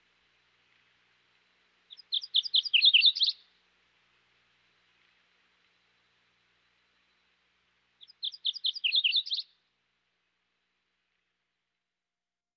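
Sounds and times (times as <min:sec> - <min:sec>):
MacGillivray's warbler from Western North America: 0:01.9 - 0:03.4, 0:08.0 - 0:09.5.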